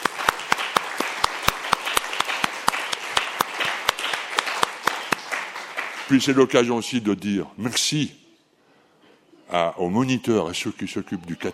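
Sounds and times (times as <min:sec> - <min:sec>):
audience applause: 0:00.0 - 0:06.5
speech: 0:06.1 - 0:08.2, 0:09.5 - 0:11.5.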